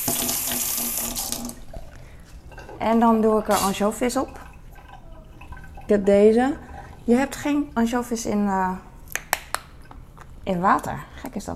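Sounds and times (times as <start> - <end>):
water running from a tap during food preparation: 0.0 - 1.7, 2.6 - 7.9
speech: 2.8 - 4.4, 5.9 - 8.9, 10.4 - 11.5.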